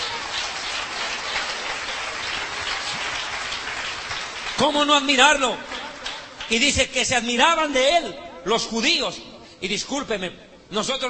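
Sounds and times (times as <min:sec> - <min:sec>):
audience applause: 0:00.0 - 0:06.4
speech: 0:04.6 - 0:05.7, 0:06.5 - 0:11.0.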